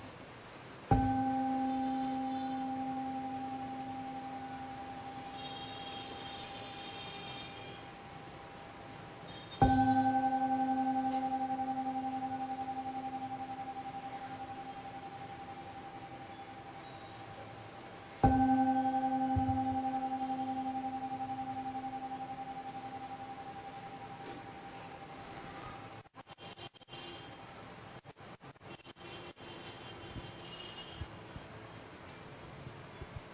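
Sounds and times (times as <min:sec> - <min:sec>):
meditation bell strikes: 0:00.9 - 0:07.1, 0:09.4 - 0:26.0.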